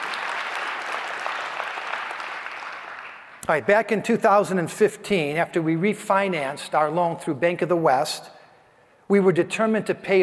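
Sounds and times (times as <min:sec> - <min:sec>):
audience applause: 0:00.0 - 0:03.3
speech: 0:03.5 - 0:08.4, 0:09.1 - 0:10.2.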